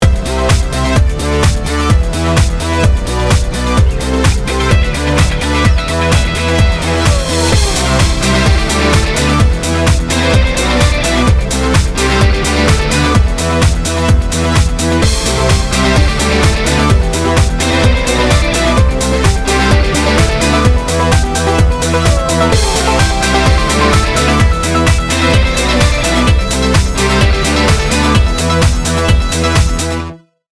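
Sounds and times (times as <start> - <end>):
dance ringtone: 0.0 - 30.0.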